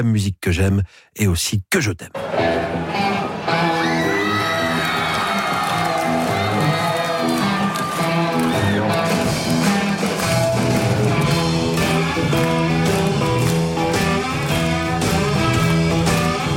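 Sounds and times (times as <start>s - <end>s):
speech: 0.0s - 3.8s
concert audience cheering at the Palais d'Hiver in Lyon: 2.2s - 16.5s.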